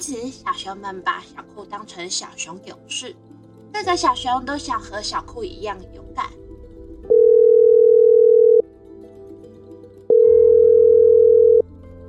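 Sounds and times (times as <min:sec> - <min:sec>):
speech: 0:00.0 - 0:06.4
telephone dial tone: 0:07.1 - 0:08.6, 0:10.1 - 0:11.7.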